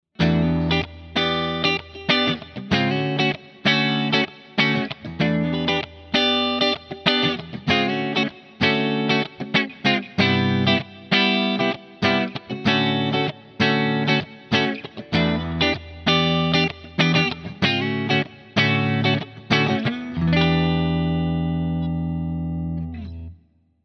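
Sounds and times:
Epiphone Custom Les Paul electric guitar clean, both pickups: 0.2 - 23.6.

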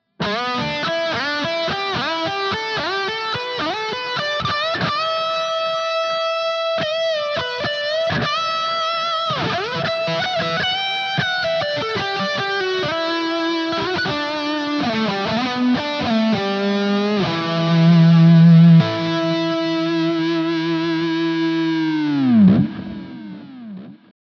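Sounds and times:
Music Man electric guitar lead in first position: 0.0 - 24.1.

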